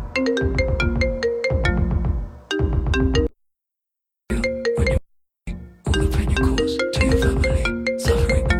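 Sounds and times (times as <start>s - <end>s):
mobile phone ringtone during a song on a radio show: 0.1s - 3.3s, 4.3s - 5.0s, 5.9s - 8.5s.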